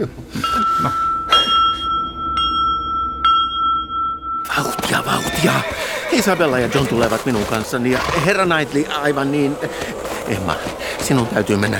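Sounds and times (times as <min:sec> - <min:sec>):
speech: 0:00.0 - 0:01.0, 0:05.4 - 0:11.7
servant's bell ringing: 0:00.4 - 0:06.8.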